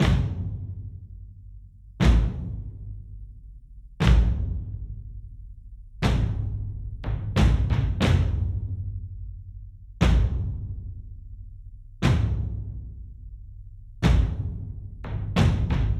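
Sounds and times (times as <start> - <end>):
drums: 0.0 - 1.0, 2.0 - 3.1, 4.0 - 5.0, 6.0 - 9.0, 10.0 - 11.0, 12.0 - 13.0, 14.0 - 15.9.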